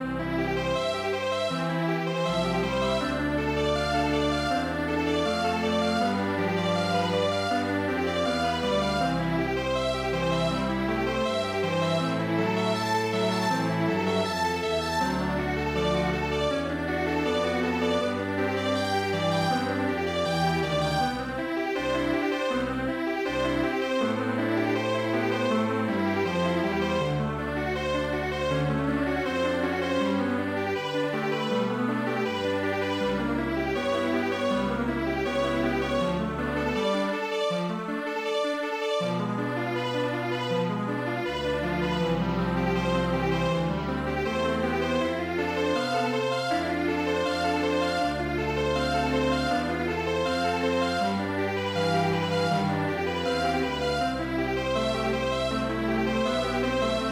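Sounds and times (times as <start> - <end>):
string quartet playing: 0.0 - 57.1.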